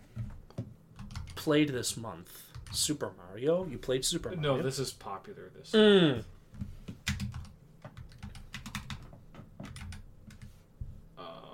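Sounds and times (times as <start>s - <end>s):
low hum: 0.0s - 11.5s
keystrokes on a computer keyboard: 1.0s - 1.4s, 2.4s - 2.9s, 6.6s - 10.5s
speech: 1.4s - 6.4s.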